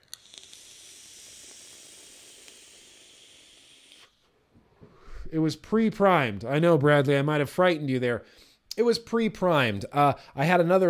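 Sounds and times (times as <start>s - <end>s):
gurgling saturated vape coil being puffed: 0.0s - 4.2s
speech: 5.3s - 10.8s.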